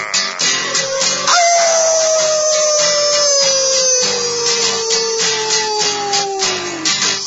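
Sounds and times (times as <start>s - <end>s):
dogs howling: 0.0s - 7.0s.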